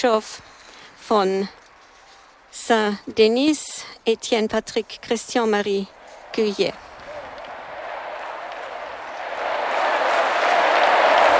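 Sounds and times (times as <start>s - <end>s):
speech: 0.0s - 0.5s, 1.1s - 1.6s, 2.5s - 6.9s
huge crowd applauding in a stadium: 6.9s - 11.3s.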